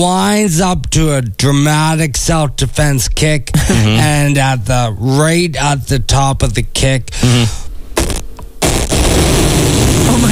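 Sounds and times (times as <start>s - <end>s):
speech: 0.0s - 7.6s
very loud fart echoing through the room: 7.2s - 10.2s.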